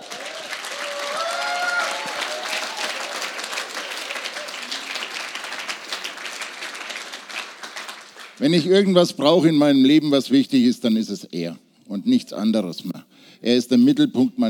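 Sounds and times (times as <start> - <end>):
audience applause: 0.0 - 8.4
speech: 8.4 - 14.4.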